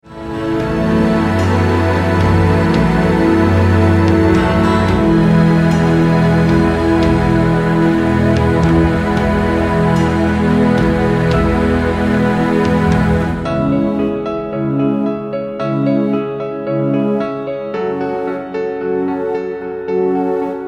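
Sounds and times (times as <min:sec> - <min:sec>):
relaxation music: 0:00.0 - 0:20.6.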